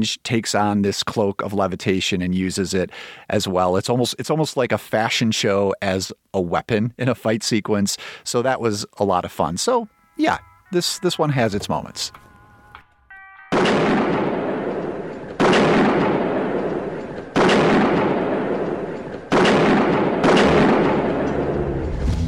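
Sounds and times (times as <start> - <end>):
speech: 0.0 - 12.3
droning tonal background: 9.8 - 13.5
heavy gunfire as police return fire: 13.5 - 22.1.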